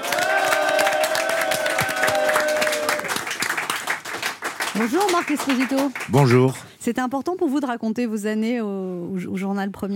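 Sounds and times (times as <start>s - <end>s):
studio audience applauding and cheering for an arriving guest: 0.0s - 6.6s
speech: 4.8s - 9.9s.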